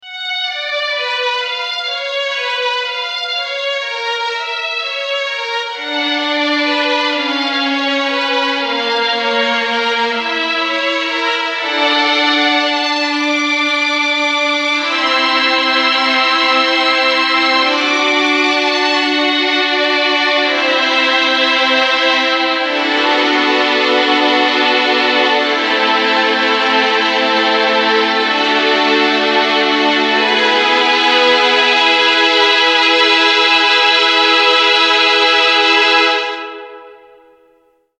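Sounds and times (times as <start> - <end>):
violins: 0.0 - 37.4.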